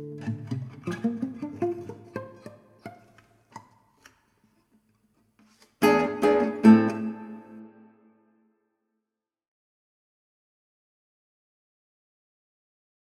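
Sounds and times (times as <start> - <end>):
gavotte music: 0.0 - 3.2, 5.8 - 8.2.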